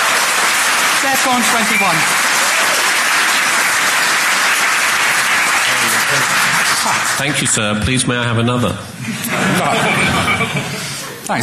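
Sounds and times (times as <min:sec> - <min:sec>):
audience applause: 0:00.0 - 0:07.6
speech: 0:01.0 - 0:02.2, 0:06.1 - 0:11.4
laughter: 0:09.0 - 0:11.4.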